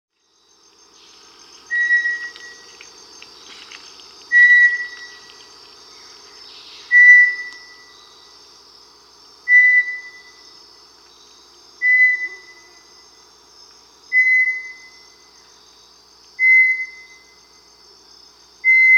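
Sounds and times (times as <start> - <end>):
Bartlett's tinamou whistled song: 1.7 - 2.6, 4.3 - 5.3, 6.7 - 7.9, 9.5 - 10.4, 14.1 - 15.1, 16.4 - 17.4, 18.7 - 18.9.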